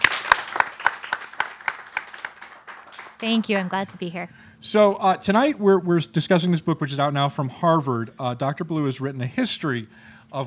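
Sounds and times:
audience applause welcoming an author at a bookstore event: 0.0s - 4.2s
speech: 3.2s - 10.4s.

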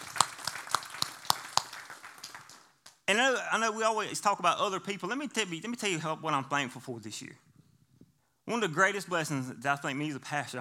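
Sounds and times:
audience clapping hands: 0.0s - 3.1s
speech: 3.1s - 7.5s, 8.5s - 10.5s.

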